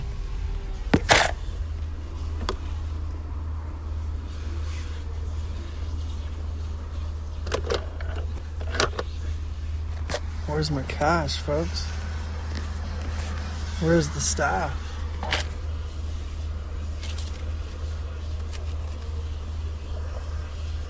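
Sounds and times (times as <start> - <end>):
sharp clicks and thumps: 0.0 - 1.4
car engine idling at a car wash: 0.0 - 20.8
speech: 10.6 - 12.0, 13.8 - 14.8.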